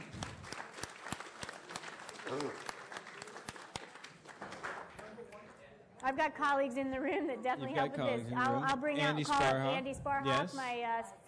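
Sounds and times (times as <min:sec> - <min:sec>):
audience round of applause: 0:00.0 - 0:05.2
speech: 0:02.3 - 0:02.7, 0:06.0 - 0:11.2.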